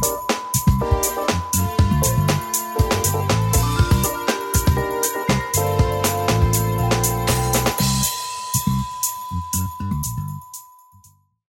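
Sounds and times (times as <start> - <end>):
smooth jazz funk melody: 0.0 - 8.9.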